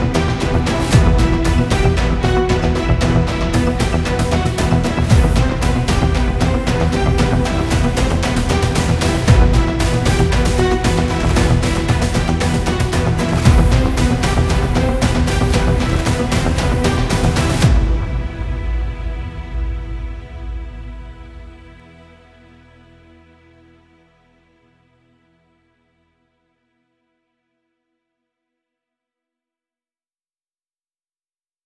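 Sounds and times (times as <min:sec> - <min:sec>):
tense violin music: 0:00.0 - 0:23.8.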